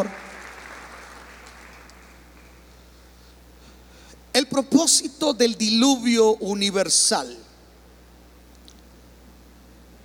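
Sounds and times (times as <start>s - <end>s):
speech: 0.0s - 0.2s, 4.4s - 7.5s
audience applause: 0.0s - 2.5s.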